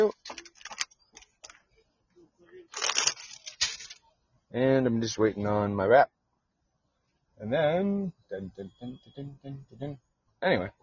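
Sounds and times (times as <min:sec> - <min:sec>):
playing cards being put away: 0:00.1 - 0:01.6, 0:02.8 - 0:04.0
speech: 0:04.5 - 0:06.2, 0:07.4 - 0:10.8.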